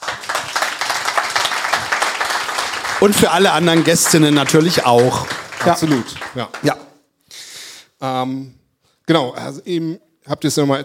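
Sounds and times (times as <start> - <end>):
audience applause: 0.0 - 6.9
speech: 3.0 - 6.8, 8.0 - 10.8.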